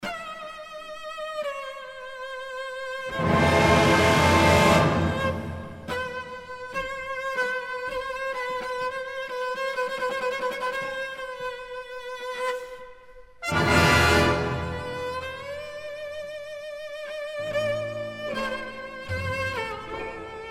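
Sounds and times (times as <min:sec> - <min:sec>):
cello concerto: 0:01.0 - 0:12.6, 0:13.4 - 0:20.4.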